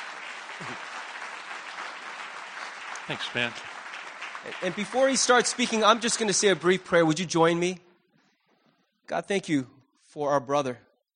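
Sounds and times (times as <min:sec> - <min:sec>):
audience applause: 0:00.0 - 0:07.1
speech: 0:00.6 - 0:01.0, 0:03.1 - 0:03.7, 0:04.4 - 0:07.8, 0:09.1 - 0:10.9.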